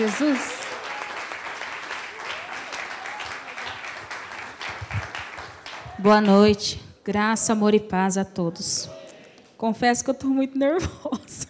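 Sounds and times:
speech: 0.0 - 0.6, 6.0 - 9.0, 9.6 - 11.4
audience applauding: 0.0 - 6.4.

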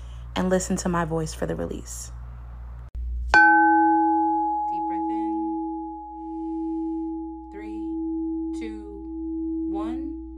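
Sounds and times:
low steady hum: 0.0 - 10.3
speech: 0.4 - 2.2
struck sound-healing bell ringing: 3.3 - 10.0.

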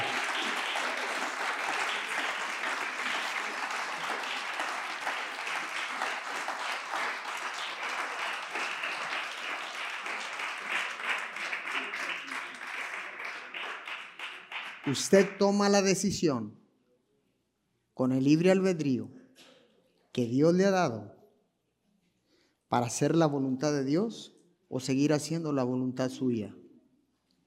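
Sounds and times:
audience applause: 0.0 - 15.5
speech: 14.9 - 16.6, 18.0 - 19.2, 20.2 - 21.2, 22.7 - 26.6.

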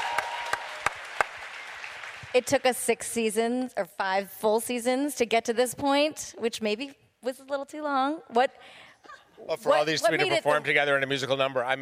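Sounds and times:
audience applause: 0.0 - 2.4
speech: 2.3 - 11.8.

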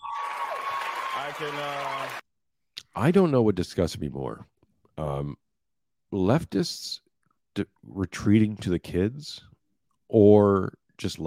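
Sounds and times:
crowd applauding: 0.0 - 2.2
speech: 1.2 - 2.2, 3.0 - 5.4, 6.1 - 7.0, 7.6 - 9.5, 10.1 - 11.2.

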